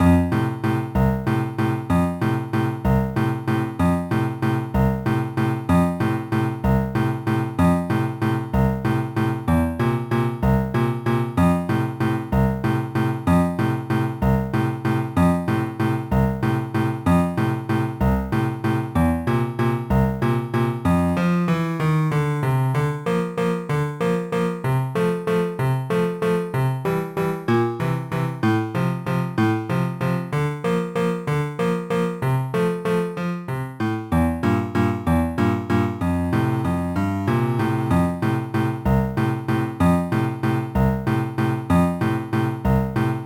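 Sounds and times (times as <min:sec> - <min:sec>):
background piano music: 0:00.0 - 0:43.2.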